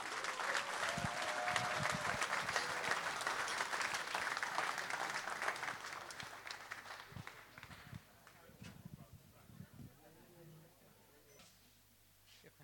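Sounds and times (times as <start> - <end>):
jazz audience applause welcoming a band: 0.0 - 8.0.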